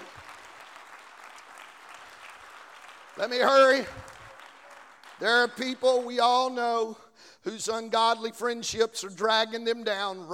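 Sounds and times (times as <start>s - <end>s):
audience clapping hands: 0.0s - 6.6s
speech: 3.2s - 4.1s, 5.2s - 10.3s.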